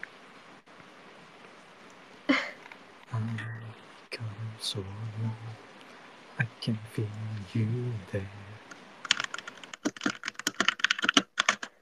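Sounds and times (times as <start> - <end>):
speech: 3.1 - 3.6, 4.6 - 5.7, 6.4 - 8.5
fast typing on a computer keyboard with space bar: 9.0 - 11.8.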